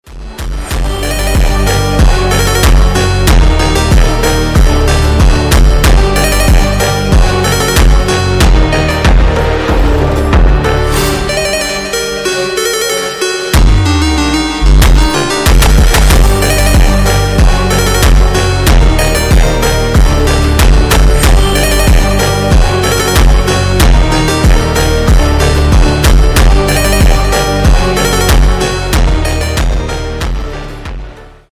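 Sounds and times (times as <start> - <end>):
slowed reverb music: 0.5 - 31.4.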